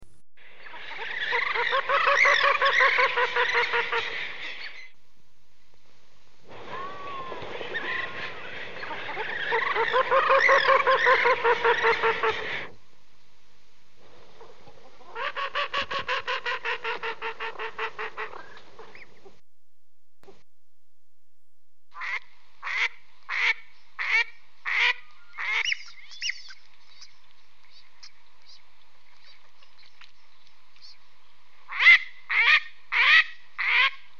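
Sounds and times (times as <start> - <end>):
background hiss: 0.0 - 34.1
duck quacking: 0.6 - 4.9, 6.7 - 12.7, 14.4 - 19.4, 22.0 - 26.4, 31.7 - 34.1.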